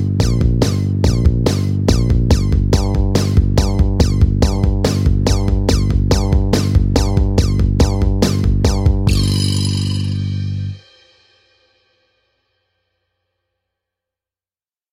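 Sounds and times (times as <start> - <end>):
hip hop instrumental: 0.1 - 11.1.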